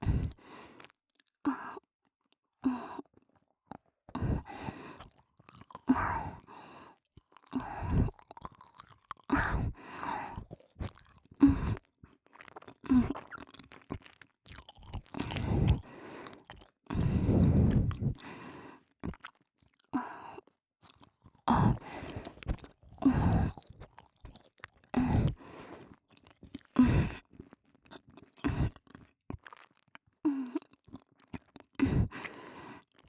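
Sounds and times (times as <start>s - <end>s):
ASMR chocolate sounds: 3.8s - 18.2s, 20.8s - 31.8s.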